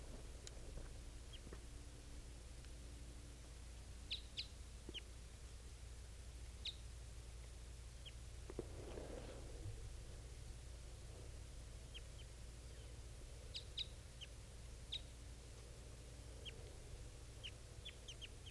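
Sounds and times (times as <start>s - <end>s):
steady low hum: 0.0s - 18.4s
two female birds calling: 4.0s - 5.1s, 8.0s - 18.4s.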